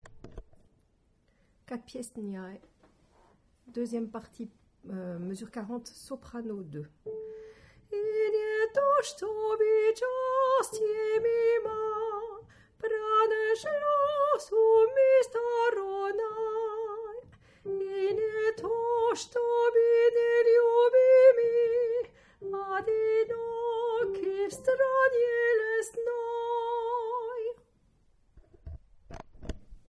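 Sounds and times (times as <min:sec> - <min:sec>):
soprano singing: 0:03.8 - 0:27.6.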